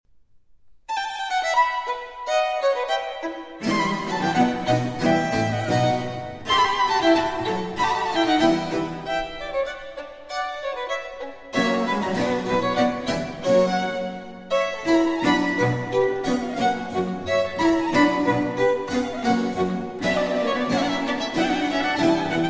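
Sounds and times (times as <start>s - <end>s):
violin with continuo: 0.9s - 22.4s.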